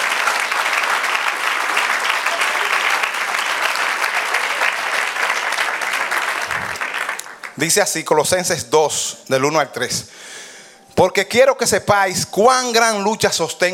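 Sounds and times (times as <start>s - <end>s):
audience applause: 0.0s - 7.6s
speech: 7.6s - 10.2s, 11.0s - 13.7s.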